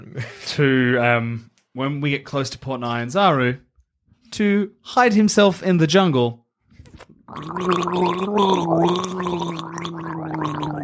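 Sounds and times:
speech: 0.2s - 3.7s, 4.3s - 10.7s
voice gargling imitating speech underwater: 6.8s - 10.8s.

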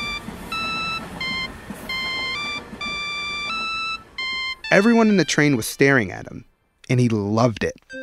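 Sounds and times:
mobile phone ringtone playing from a pocket: 0.0s - 5.6s
speech: 4.7s - 7.9s.

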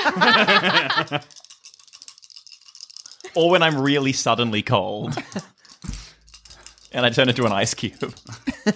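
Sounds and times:
laughter: 0.0s - 1.4s, 5.0s - 5.5s, 8.2s - 8.7s
speech: 0.2s - 1.4s, 3.4s - 5.6s, 6.9s - 8.7s
dice rattling: 0.4s - 8.7s.

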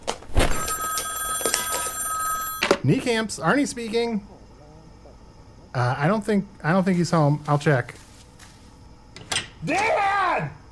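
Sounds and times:
household telephone ringing with a bright electronic tone: 0.5s - 3.0s
speech: 2.8s - 4.3s, 5.8s - 8.0s, 9.6s - 10.5s.

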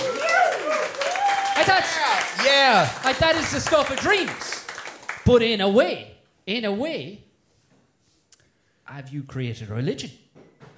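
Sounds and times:
audience applause: 0.0s - 5.3s
speech: 1.6s - 4.5s, 5.3s - 7.2s, 8.9s - 10.2s.

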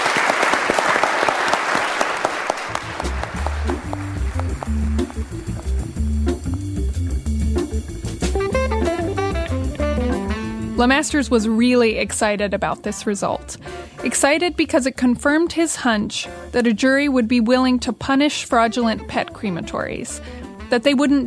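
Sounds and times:
audience applause: 0.0s - 6.2s
upbeat music track with a steady bass line: 2.7s - 21.2s
speech: 10.8s - 21.2s.

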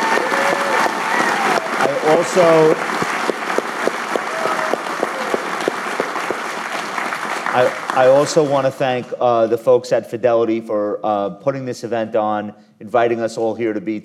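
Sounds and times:
whoops and voices: 0.0s - 2.3s
audience applause: 0.0s - 9.1s
speech: 2.0s - 3.0s, 7.6s - 14.0s.

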